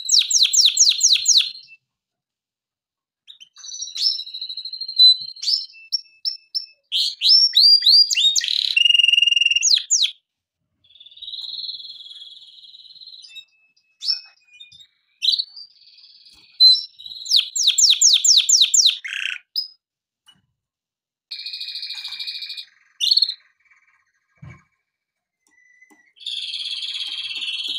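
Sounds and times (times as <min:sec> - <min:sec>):
canary song: 0:00.0 - 0:02.0, 0:03.2 - 0:20.5, 0:21.3 - 0:27.7.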